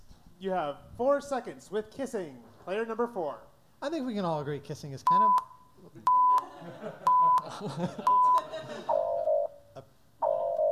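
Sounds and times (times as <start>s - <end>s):
speech: 0.4s - 9.0s
countdown timer beeps as time runs out: 5.1s - 6.4s, 7.0s - 9.6s
laughter: 6.3s - 9.2s.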